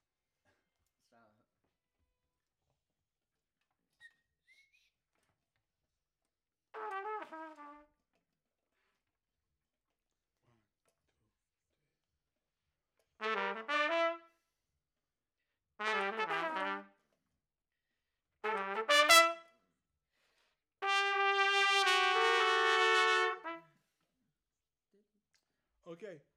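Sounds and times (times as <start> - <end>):
trumpet: 6.8 - 8.0, 13.2 - 14.5, 15.8 - 17.1, 18.4 - 19.6, 20.8 - 23.8.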